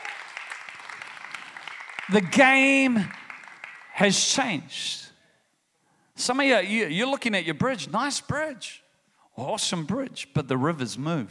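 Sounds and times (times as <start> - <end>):
crowd clapping in praise: 0.0 - 4.4
speech: 2.1 - 3.2, 4.0 - 5.1, 6.2 - 8.8, 9.4 - 11.2.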